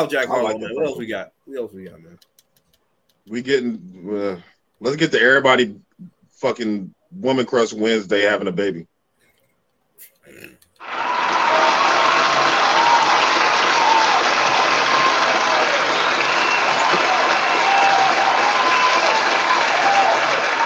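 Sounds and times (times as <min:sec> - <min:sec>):
speech: 0:00.0 - 0:02.3, 0:03.2 - 0:08.9
applause: 0:10.8 - 0:20.6.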